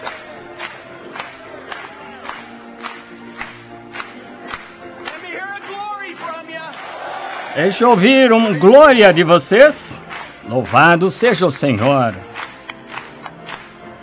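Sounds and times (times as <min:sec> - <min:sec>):
audience clapping and cheering: 0:00.0 - 0:14.0
speech: 0:07.6 - 0:09.9, 0:10.5 - 0:12.3.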